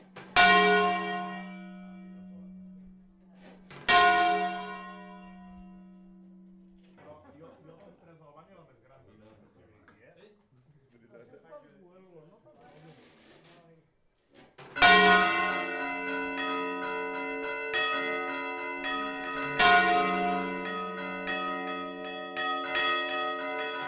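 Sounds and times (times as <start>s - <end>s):
bell: 0.0s - 7.0s, 14.8s - 23.8s.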